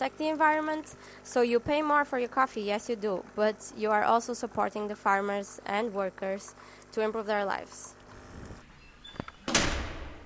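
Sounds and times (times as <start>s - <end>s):
speech: 0.0s - 8.0s
double heat-insulating doors closing in a university corridor: 8.6s - 10.2s.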